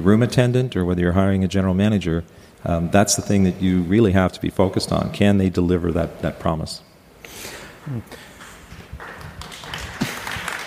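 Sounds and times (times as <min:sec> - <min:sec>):
speech: 0:00.0 - 0:08.3
applause: 0:08.4 - 0:10.6.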